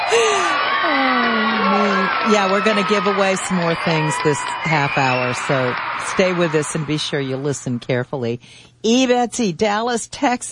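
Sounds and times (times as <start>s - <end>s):
crowd cheering sound effect: 0.0s - 7.9s
speech: 2.3s - 10.4s.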